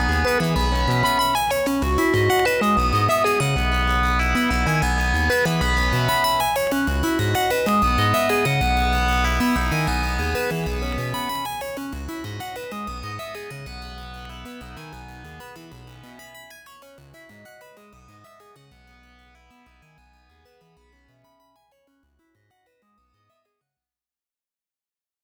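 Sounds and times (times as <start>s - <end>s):
modular synthesizer: 0.0s - 16.1s.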